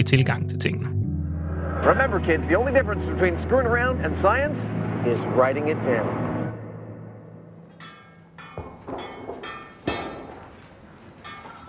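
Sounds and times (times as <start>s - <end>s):
speech: 0.1s - 1.0s, 1.8s - 6.2s
blacksmith hammering metal: 7.6s - 11.6s.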